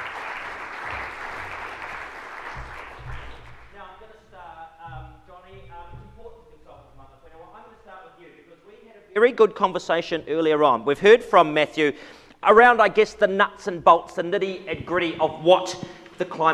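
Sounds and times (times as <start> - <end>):
audience applause: 0.0 - 3.8
speech: 9.2 - 16.5.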